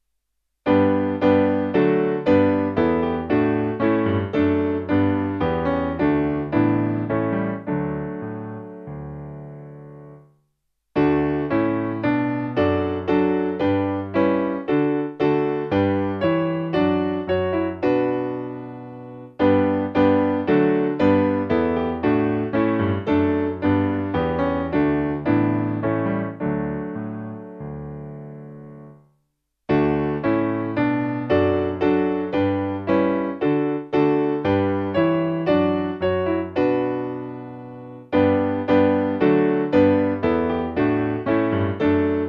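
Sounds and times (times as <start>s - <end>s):
piano: 0.0s - 42.2s.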